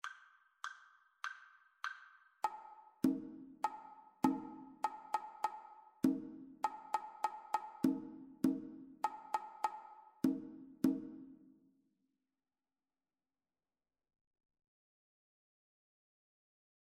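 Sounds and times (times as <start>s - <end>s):
two-part rhythm: 0.0s - 11.5s.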